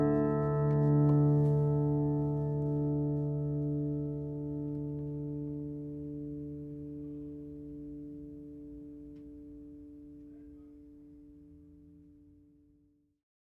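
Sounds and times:
all-koa steel-string flattop acoustic guitar: 0.0 - 8.8.

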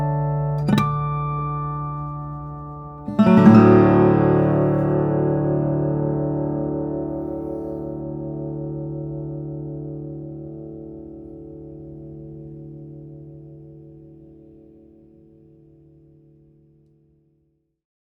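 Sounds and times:
Taylor Liberty flattop steel-string guitars: 0.0 - 13.8.

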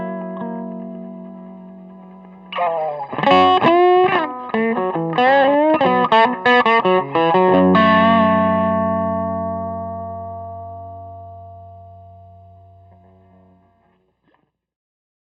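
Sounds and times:
hollow body electric guitar of mahogany and maple: 0.0 - 13.9.

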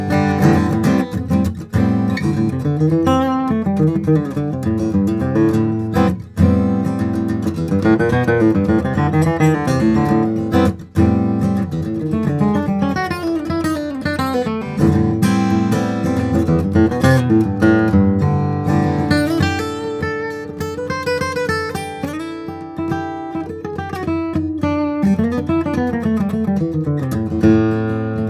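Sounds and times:
steel string flattop guitar of rosewood and spruce: 0.0 - 28.2.

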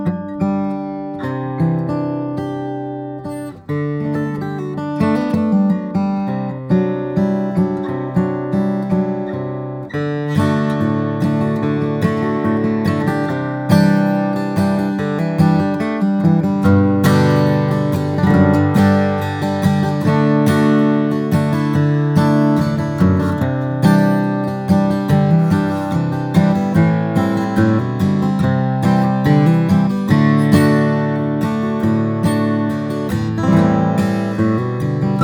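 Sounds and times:
steel-string flattop guitar of flamed maple and German spruce: 0.0 - 35.2.

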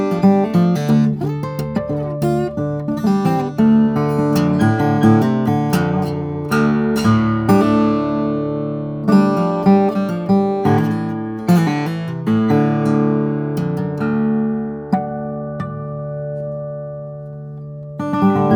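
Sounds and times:
1930 Martin 00-40H flattop steel string guitar of Brazilian rosewood and Adirondack spruce: 0.0 - 18.5.

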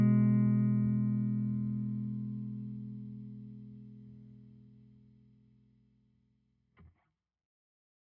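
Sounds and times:
guitars: 0.0 - 5.1.

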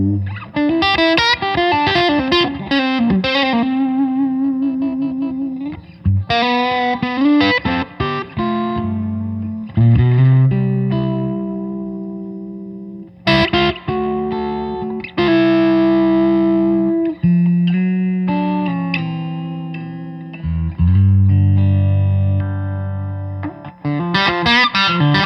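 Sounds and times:
mahogany solid body electric guitar: 0.0 - 25.2.

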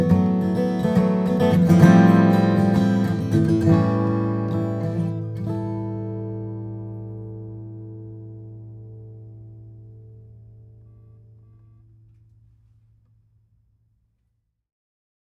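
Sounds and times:
Martin D-45 steel string flattop guitar of Guatemalan rosewood and Adirondack spruce: 0.0 - 11.5.

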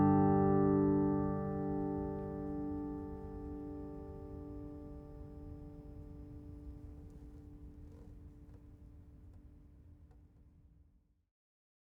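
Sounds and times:
parlor flattop steel-string guitar of Brazilian rosewood and Sitka spruce: 0.0 - 5.7.

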